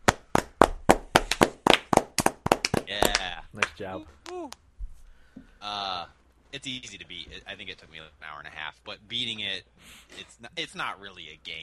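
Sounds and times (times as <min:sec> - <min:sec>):
applause: 0:00.0 - 0:03.8
laughter: 0:02.9 - 0:04.0, 0:05.6 - 0:09.6, 0:10.2 - 0:11.6
speech: 0:03.6 - 0:04.6, 0:05.4 - 0:11.6.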